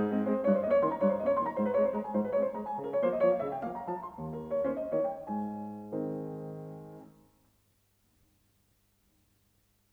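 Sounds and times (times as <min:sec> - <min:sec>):
piano waltz in A flat major: 0:00.0 - 0:07.4.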